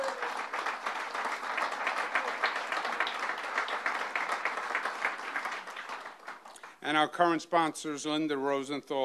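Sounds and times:
crowd applauding: 0.0 - 6.8
speech: 6.9 - 9.0.

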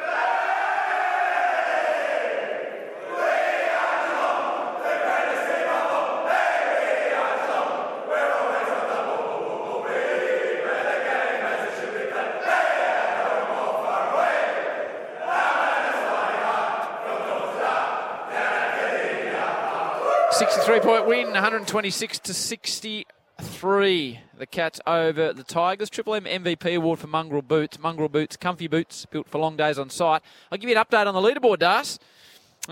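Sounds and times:
team singing club song in rooms: 0.0 - 22.2
speech: 20.7 - 23.0, 23.6 - 32.7.

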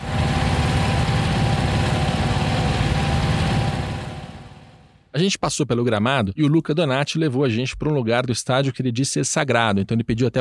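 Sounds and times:
lawn mower passing: 0.0 - 4.9
speech: 5.2 - 10.3.

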